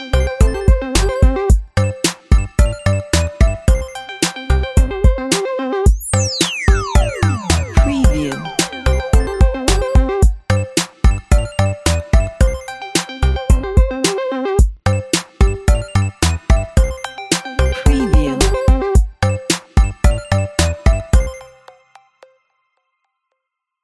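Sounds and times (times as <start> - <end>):
retro game music: 0.0 - 22.3.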